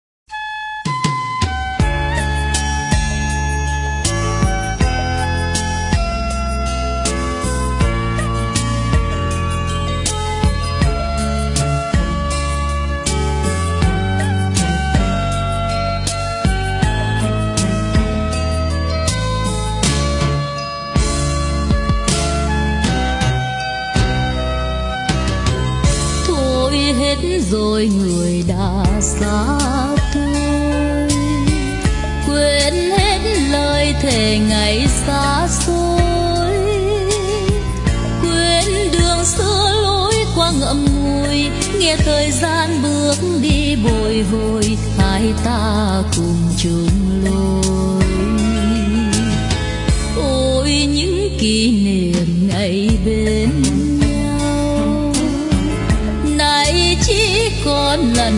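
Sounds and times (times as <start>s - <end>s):
Vietnamese overseas sentimental song medley: 0.3s - 58.3s.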